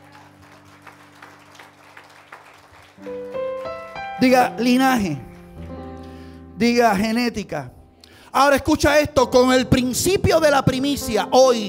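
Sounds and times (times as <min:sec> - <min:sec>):
audience applause: 0:00.0 - 0:06.3
speech: 0:03.0 - 0:03.3, 0:04.2 - 0:05.3, 0:06.6 - 0:07.8, 0:08.4 - 0:11.6.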